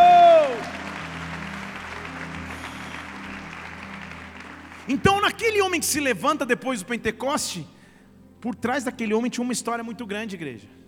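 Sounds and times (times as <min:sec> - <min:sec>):
audience applause: 0:00.0 - 0:05.7
speech: 0:04.9 - 0:07.8, 0:08.4 - 0:10.8.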